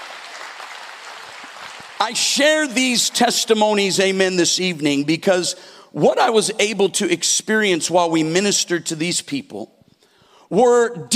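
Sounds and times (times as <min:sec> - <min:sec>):
audience clapping: 0:00.0 - 0:03.6
speech: 0:02.0 - 0:09.8, 0:10.5 - 0:11.1.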